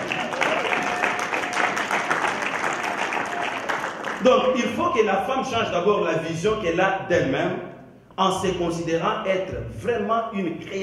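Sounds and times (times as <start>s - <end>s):
audience applause: 0.0s - 4.5s
speech: 4.2s - 10.8s.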